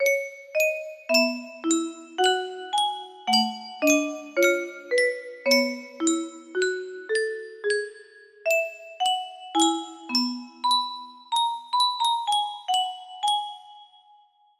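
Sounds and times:
melody: 0:00.0 - 0:13.8.

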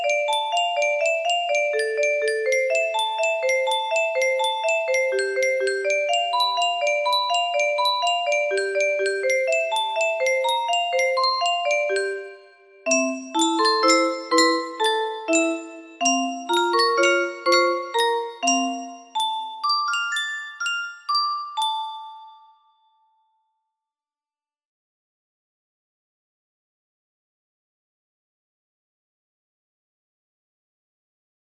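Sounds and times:
music box melody in F: 0:00.0 - 0:23.1.

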